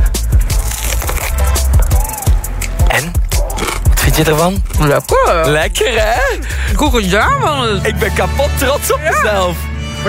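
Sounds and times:
small piece of food crunched close to the microphone: 0.4s - 5.2s
speech: 4.2s - 10.0s.

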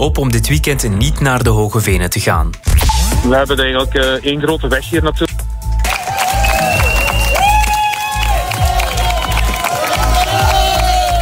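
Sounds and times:
speech: 0.0s - 5.4s
crowd cheering and clapping for arriving marathon walkers: 5.7s - 11.1s
crowd whistles: 6.4s - 8.0s
crowd shouts: 7.7s - 11.1s.

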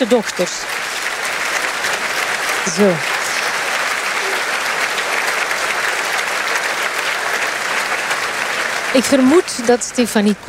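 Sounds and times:
speech: 0.0s - 1.0s, 2.6s - 3.1s, 8.9s - 10.4s
audience applause in concert hall: 0.0s - 10.4s.

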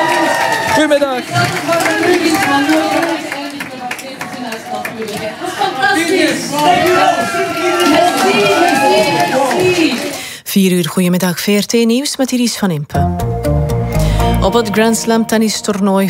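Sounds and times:
large live crowd cheering: 0.0s - 10.2s
scattered clapping: 0.0s - 10.3s
speech: 0.8s - 3.1s, 6.0s - 13.3s, 14.4s - 16.0s.

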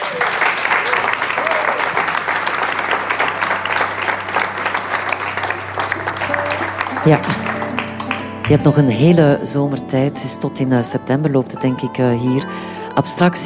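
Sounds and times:
audience applause: 0.0s - 9.1s
speech: 7.1s - 7.4s, 8.5s - 13.4s.

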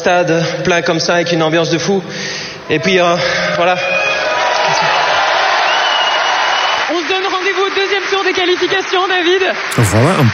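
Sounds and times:
speech: 0.0s - 4.0s, 7.9s - 10.3s
stadium crowd applauding and cheering: 3.5s - 10.3s.

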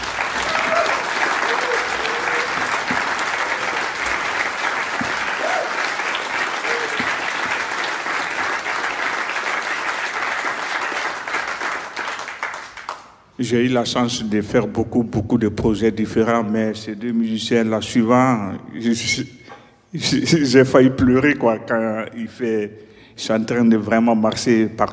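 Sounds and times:
large crowd audience applause: 0.0s - 13.1s
speech: 13.4s - 24.9s.

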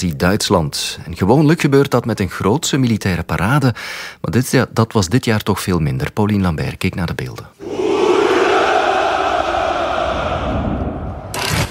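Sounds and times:
speech: 0.0s - 7.8s
crowd shouting hurrah at a Russian Victory Day celebration: 7.6s - 11.4s.

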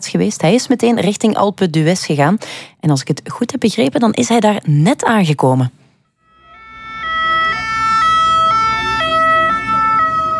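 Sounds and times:
speech: 0.0s - 5.8s
police sirens near a closed mountain road: 6.3s - 10.3s.

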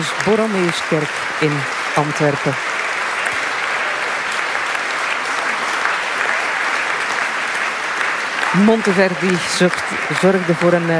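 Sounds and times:
audience applause in a church: 0.0s - 10.9s
speech: 0.2s - 2.8s, 8.5s - 10.9s.

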